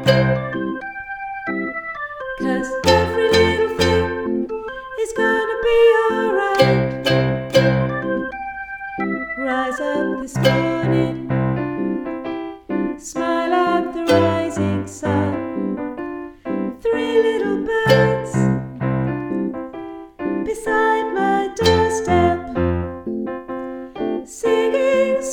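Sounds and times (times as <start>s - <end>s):
ukulele: 0.0s - 0.9s, 2.4s - 8.4s, 9.4s - 12.2s, 13.0s - 15.7s, 16.8s - 19.5s, 20.5s - 23.2s, 24.4s - 25.3s.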